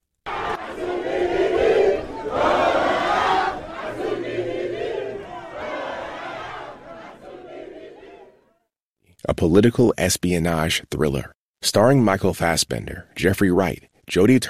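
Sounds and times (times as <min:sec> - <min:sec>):
stadium crowd cheering wildly after goal: 0:00.3 - 0:08.5
speech: 0:09.4 - 0:14.4.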